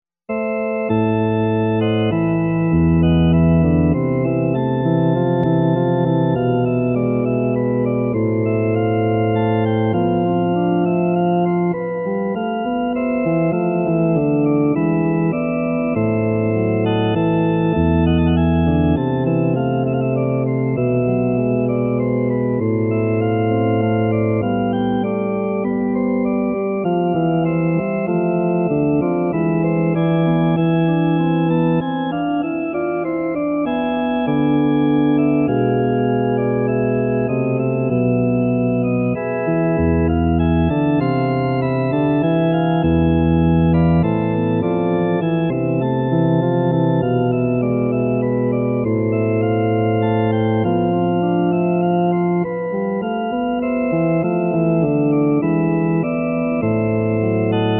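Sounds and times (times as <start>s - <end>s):
sarabande on grand organ: 0.3s - 57.7s.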